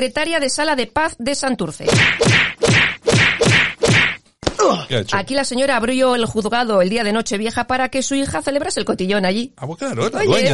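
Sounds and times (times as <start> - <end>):
speech: 0.0 - 2.6, 4.6 - 10.5
slap sound effect: 1.9 - 4.6
short pitched groan-like vocal sound: 4.6 - 4.9.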